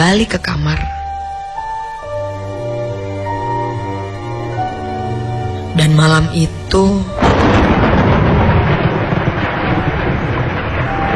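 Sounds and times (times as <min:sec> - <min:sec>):
speech: 0:00.1 - 0:01.0, 0:05.8 - 0:07.6
heavy rain: 0:01.9 - 0:11.1
thunder: 0:07.0 - 0:11.1.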